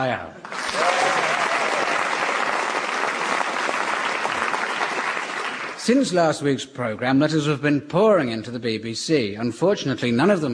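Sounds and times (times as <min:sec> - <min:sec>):
speech: 0:00.0 - 0:00.9, 0:05.8 - 0:10.5
studio audience applause: 0:00.4 - 0:05.9.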